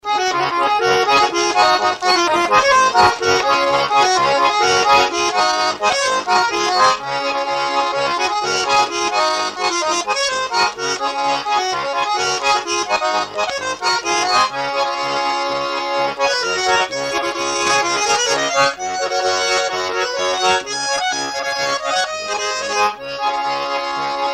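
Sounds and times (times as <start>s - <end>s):
polka folk music: 0.0s - 24.3s.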